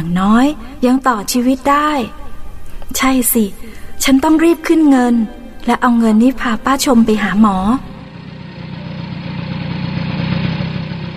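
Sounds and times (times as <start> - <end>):
speech: 0.0 - 2.2, 2.9 - 7.9
car engine of an arriving car: 7.3 - 11.1.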